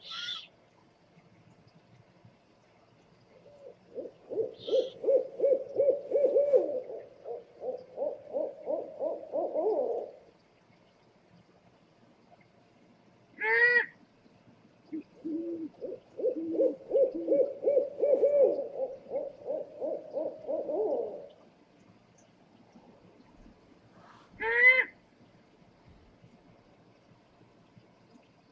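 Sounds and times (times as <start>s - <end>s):
scops owl hooting: 0.0s - 0.5s, 3.5s - 10.2s, 15.0s - 21.3s, 24.4s - 24.9s.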